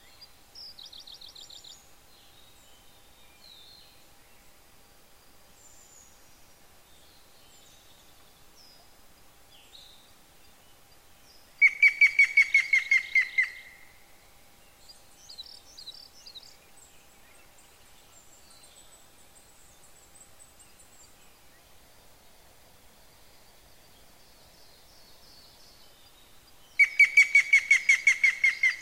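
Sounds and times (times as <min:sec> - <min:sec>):
yamagera bird calling: 0:11.6 - 0:14.0, 0:26.8 - 0:28.8.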